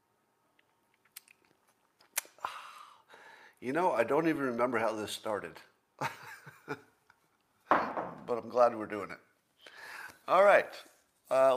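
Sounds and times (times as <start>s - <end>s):
mouth clicks: 0.5s - 2.6s
speech: 3.6s - 6.8s, 8.3s - 9.3s, 10.3s - 11.5s.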